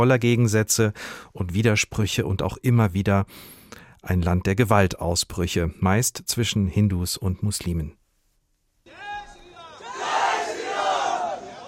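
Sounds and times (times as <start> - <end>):
speech: 0.0 - 8.0
crowd of demonstrators chanting a slogan: 8.9 - 11.6.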